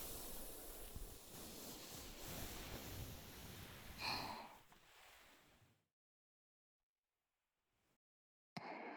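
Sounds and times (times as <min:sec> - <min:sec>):
ASMR ear massage sounds: 0:00.0 - 0:05.4.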